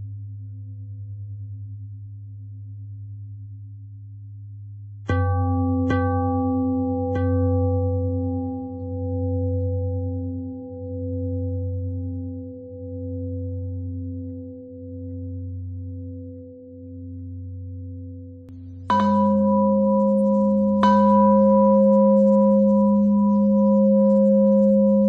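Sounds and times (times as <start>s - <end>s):
pentatonic bell melody: 5.1s - 17.1s, 17.9s - 25.0s.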